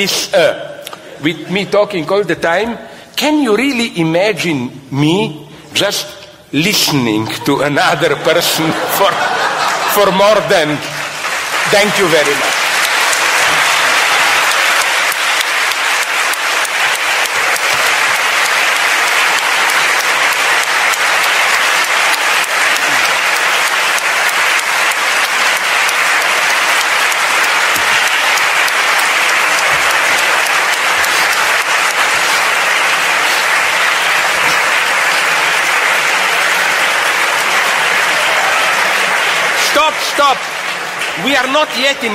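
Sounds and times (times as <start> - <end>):
speech: 0.0 - 11.0, 11.6 - 12.6, 41.4 - 42.1
laughter: 6.8 - 11.2
audience applause: 7.4 - 42.1.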